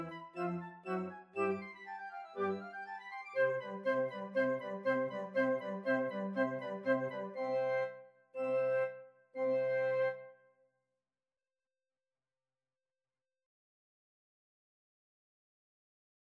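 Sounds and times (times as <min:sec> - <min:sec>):
flute: 0:00.0 - 0:10.5.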